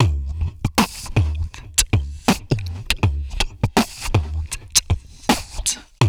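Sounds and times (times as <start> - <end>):
vocal drum mouth percussion: 0.0 - 6.0.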